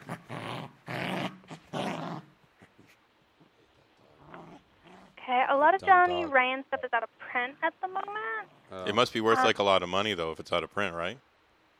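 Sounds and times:
dog growling while chewing comics: 0:00.0 - 0:02.9, 0:03.5 - 0:05.2
speech: 0:05.3 - 0:11.3.

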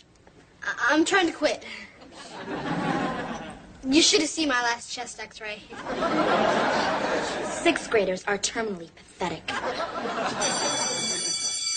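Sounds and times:
speech: 0:00.9 - 0:02.8, 0:03.8 - 0:10.6
laughter: 0:02.0 - 0:03.7, 0:05.7 - 0:08.0, 0:09.5 - 0:11.7
school bell ringing with metallic clatter: 0:10.1 - 0:11.7.

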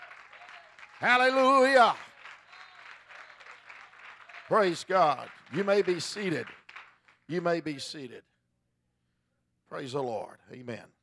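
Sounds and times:
audience clapping in praise: 0:00.0 - 0:08.0
speech: 0:01.0 - 0:02.1, 0:04.5 - 0:06.6, 0:07.3 - 0:08.3, 0:09.7 - 0:11.0.

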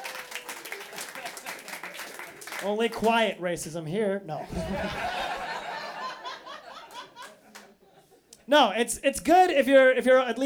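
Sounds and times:
laughter: 0:00.0 - 0:02.4, 0:04.4 - 0:08.3
pub crowd clapping: 0:00.0 - 0:03.2, 0:06.9 - 0:07.8
speech: 0:02.6 - 0:05.2, 0:08.5 - 0:10.4.

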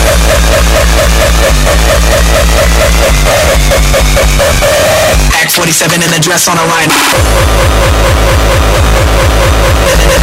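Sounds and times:
heavily distorted electronic beat: 0:00.0 - 0:10.2
speech: 0:05.8 - 0:08.6.

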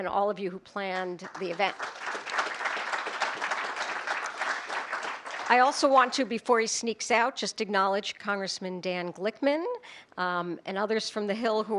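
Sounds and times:
speech: 0:00.0 - 0:02.0, 0:05.5 - 0:11.7
audience applause: 0:01.3 - 0:05.8.

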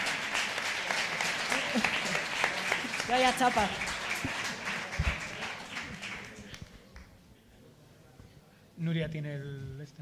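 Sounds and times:
laughter: 0:00.0 - 0:06.4
audience applause: 0:00.0 - 0:07.0
speech: 0:03.1 - 0:03.9, 0:09.0 - 0:10.0.

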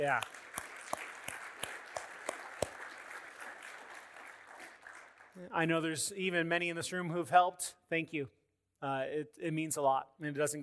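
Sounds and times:
speech: 0:00.0 - 0:00.4, 0:05.4 - 0:10.6
audience clapping: 0:00.0 - 0:06.0.

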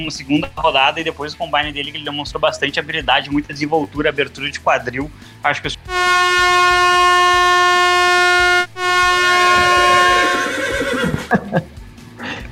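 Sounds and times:
speech: 0:00.0 - 0:07.6
horn blast: 0:05.9 - 0:10.8
horse neighing: 0:09.6 - 0:11.3
laughter: 0:10.8 - 0:12.4.

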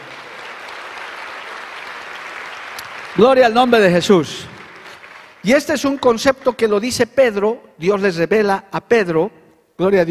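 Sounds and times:
audience clapping: 0:00.0 - 0:06.6
speech: 0:03.2 - 0:04.6, 0:05.4 - 0:10.0.

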